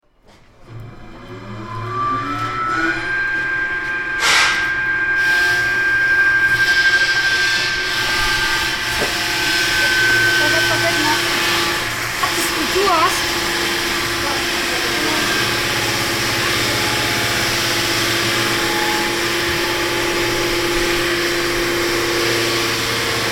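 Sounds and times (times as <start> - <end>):
circular saw: 0.6 - 23.3.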